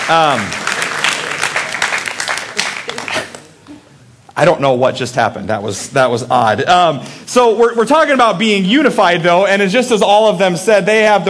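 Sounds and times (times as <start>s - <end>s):
audience round of applause: 0.0s - 3.5s
speech: 0.1s - 0.6s, 4.4s - 11.2s.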